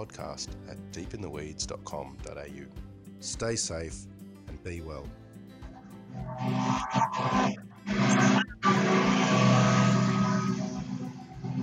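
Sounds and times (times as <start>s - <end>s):
speech: 0.0s - 5.2s, 6.2s - 8.2s
engine drone like a lawnmower: 5.7s - 11.6s.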